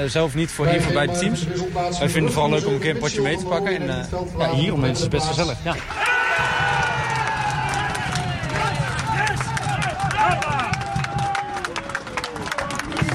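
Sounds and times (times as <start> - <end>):
speech: 0.0 - 6.1
football supporters cheering: 5.8 - 13.1.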